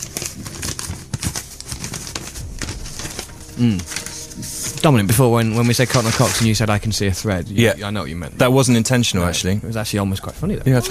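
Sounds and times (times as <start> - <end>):
paper envelope being opened: 0.0 - 6.8
speech: 3.6 - 10.8.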